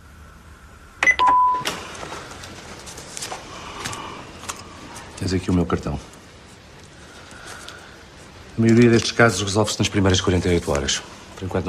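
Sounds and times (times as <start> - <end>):
answering machine beep: 1.0 - 1.8
faint hiss: 1.6 - 11.6
speech: 5.2 - 6.2, 8.6 - 11.6.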